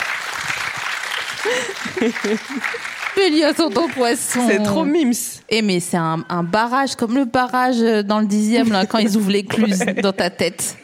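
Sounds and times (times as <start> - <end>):
audience applause: 0.0 - 4.8
laughter: 1.1 - 3.0, 3.7 - 4.9, 8.6 - 10.8
speech: 1.4 - 10.8.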